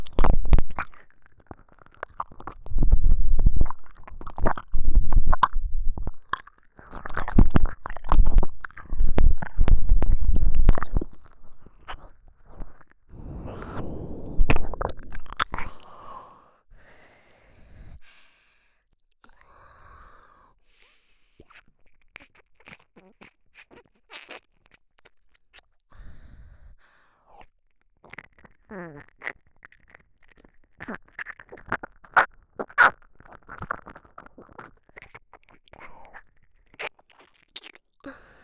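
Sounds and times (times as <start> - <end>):
ear licking sounds on the right: 0.0 - 13.0, 14.4 - 15.9, 21.4 - 25.8, 27.4 - 38.2.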